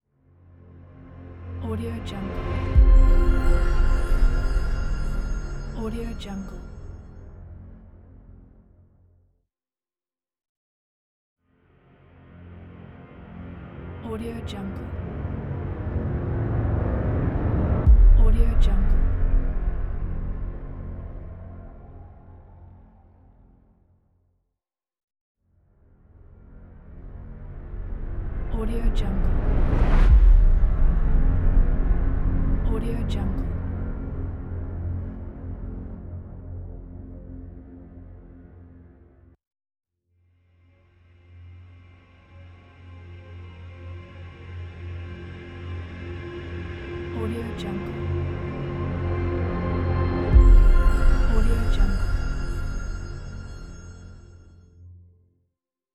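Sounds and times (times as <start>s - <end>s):
rising tension music: 0.7s - 8.8s, 14.8s - 23.8s, 26.1s - 39.3s, 41.4s - 54.5s.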